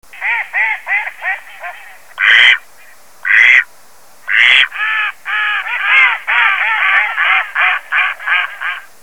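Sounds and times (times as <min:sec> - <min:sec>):
duck quacking: 0:00.1 - 0:03.7, 0:04.3 - 0:08.9.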